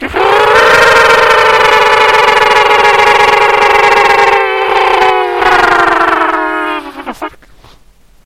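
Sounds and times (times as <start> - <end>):
alien mating call: 0.0 - 7.4.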